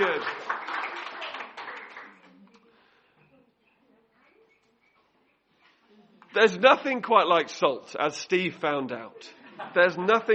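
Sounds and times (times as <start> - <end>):
audience applause: 0.0 - 2.2
speech: 6.4 - 10.3
laughter: 9.2 - 10.3.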